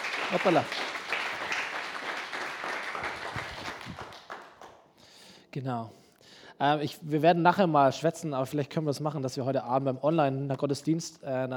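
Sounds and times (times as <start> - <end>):
audience applause: 0.0 - 4.8
speech: 0.3 - 0.8, 5.6 - 6.0, 6.6 - 11.5.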